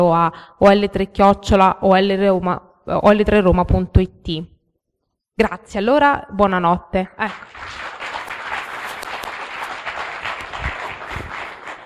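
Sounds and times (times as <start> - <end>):
speech: 0.0 - 4.5, 5.4 - 7.8
audience applause: 7.3 - 11.8.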